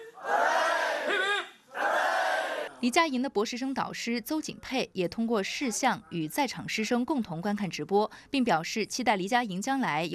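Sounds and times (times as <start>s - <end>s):
students and staff at the University of Hong Kong cheering: 0.0s - 2.8s
speech: 2.8s - 10.1s.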